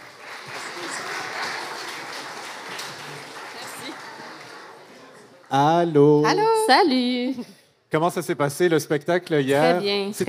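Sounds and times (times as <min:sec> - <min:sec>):
audience applause: 0:00.0 - 0:06.0
speech: 0:05.5 - 0:10.2.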